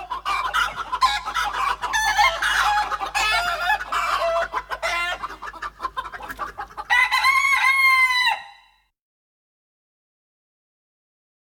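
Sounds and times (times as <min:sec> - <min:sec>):
chicken clucking: 0:00.0 - 0:08.7.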